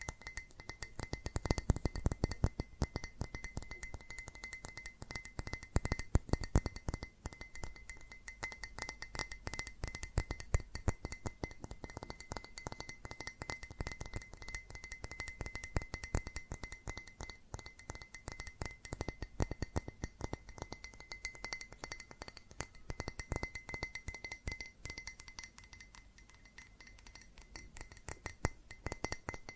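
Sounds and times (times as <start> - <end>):
fast tapping on glass and ceramic objects: 0.0 - 29.5.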